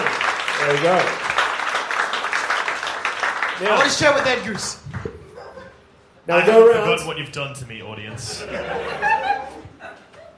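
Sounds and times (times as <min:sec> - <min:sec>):
audience applause: 0:00.0 - 0:04.8
speech: 0:00.6 - 0:01.2, 0:03.6 - 0:04.9, 0:06.3 - 0:09.6
laughter: 0:08.2 - 0:10.3.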